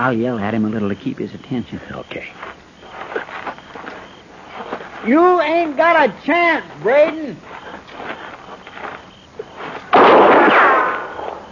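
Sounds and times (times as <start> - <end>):
speech: 0.0 - 2.6, 5.0 - 7.5
gunshot: 9.9 - 11.4.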